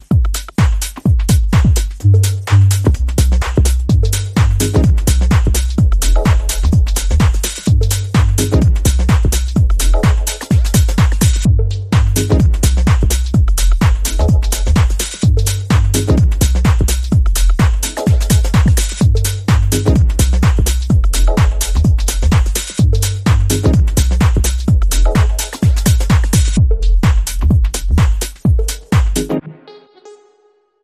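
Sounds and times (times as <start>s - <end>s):
artistic techno rhythm: 0.0s - 29.8s.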